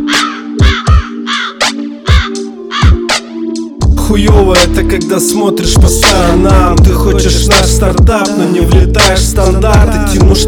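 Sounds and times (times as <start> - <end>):
crow cawing: 0.0 - 3.1
speech: 4.1 - 10.4.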